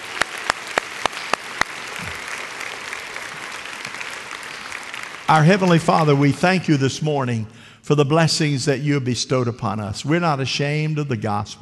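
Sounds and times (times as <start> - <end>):
sharp evenly spaced claps: 0.0 - 6.4
speech: 5.3 - 11.6.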